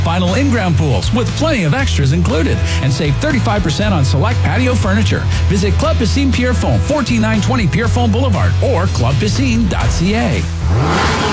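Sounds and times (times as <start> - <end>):
speech: 0.2 - 11.2
car engine revving: 9.2 - 11.3.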